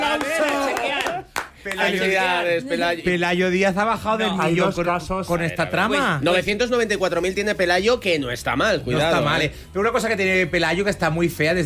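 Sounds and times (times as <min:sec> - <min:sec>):
sharp hand claps: 0:00.0 - 0:02.0
excited overlapping voices: 0:00.0 - 0:06.2
speech: 0:01.8 - 0:11.6.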